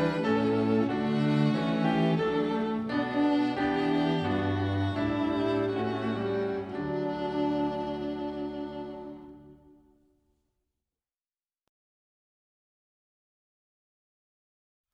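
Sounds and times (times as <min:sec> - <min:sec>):
instrumental hymn: 0:00.0 - 0:10.0.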